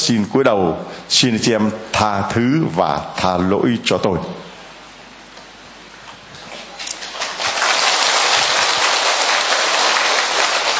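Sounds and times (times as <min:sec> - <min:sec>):
speech: 0:00.0 - 0:04.4
audience applause: 0:06.9 - 0:10.7.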